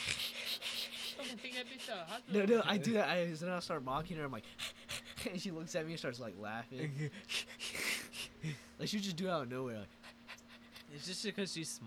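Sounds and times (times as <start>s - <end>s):
vocal imitation of heavy breathing: 0.0s - 2.5s, 4.4s - 5.5s, 7.0s - 8.8s, 9.8s - 11.0s
speech: 1.3s - 4.6s, 5.2s - 7.4s, 8.4s - 10.0s, 10.9s - 11.8s.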